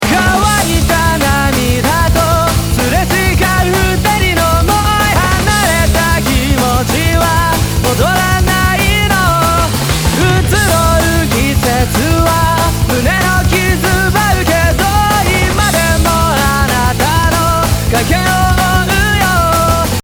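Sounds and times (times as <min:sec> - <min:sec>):
vocals: 0:00.0 - 0:20.0.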